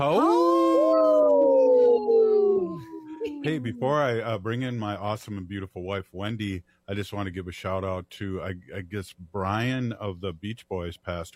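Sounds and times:
speech: 0.0s - 0.4s, 3.4s - 11.3s
people howling like wolves: 0.0s - 4.3s.

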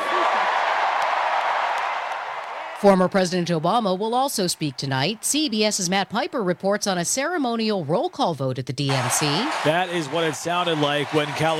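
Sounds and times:
applause for Michelle Obama at the Democratic National Convention in Chicago: 0.0s - 2.9s, 8.9s - 11.5s
speech: 2.8s - 11.5s.

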